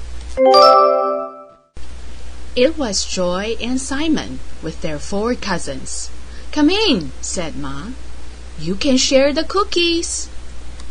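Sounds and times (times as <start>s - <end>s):
doorbell ringing: 0.4s - 1.6s
speech: 2.6s - 10.4s.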